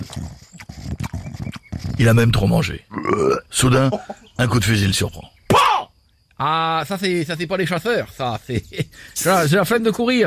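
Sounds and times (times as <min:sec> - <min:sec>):
person imitating deer grunts and snorts with their mouth: 0:00.0 - 0:03.6
speech: 0:02.0 - 0:05.3, 0:06.4 - 0:10.2.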